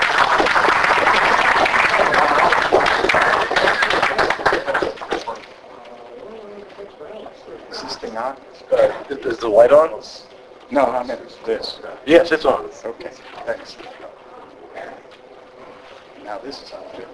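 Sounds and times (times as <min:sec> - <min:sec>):
audience applause welcoming a speaker: 0:00.0 - 0:05.5
speech: 0:09.2 - 0:14.0, 0:16.3 - 0:17.1.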